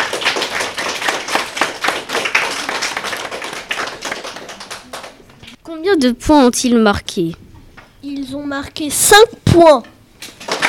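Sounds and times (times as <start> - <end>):
group applause: 0.0 - 5.6, 10.3 - 10.6
speech: 5.9 - 7.4, 8.1 - 9.9.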